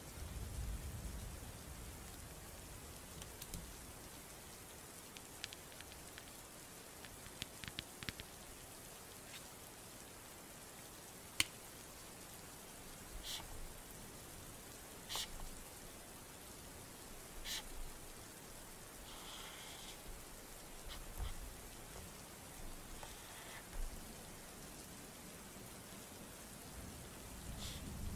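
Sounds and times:
rain falling steadily: 0.0 - 28.1
drips and taps on a surface: 5.1 - 6.4, 7.0 - 8.3.

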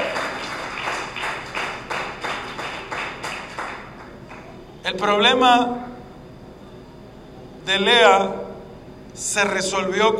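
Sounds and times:
audience applauding: 0.0 - 4.5
speech: 4.9 - 5.9, 7.7 - 8.4, 9.2 - 10.1.

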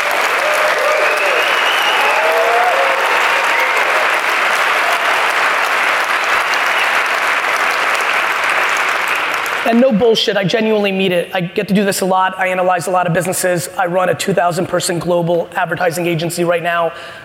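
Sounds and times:
audience applause: 0.0 - 9.7
speech: 9.7 - 17.2.

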